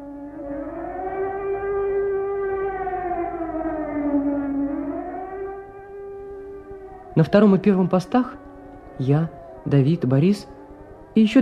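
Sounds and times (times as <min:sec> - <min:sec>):
air raid siren: 0:00.0 - 0:11.4
speech: 0:07.2 - 0:08.4, 0:09.0 - 0:10.6, 0:11.2 - 0:11.4.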